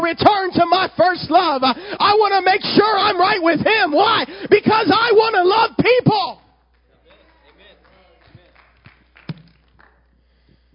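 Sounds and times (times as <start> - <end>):
speech: 0.0 - 6.3
hand claps: 6.6 - 10.2.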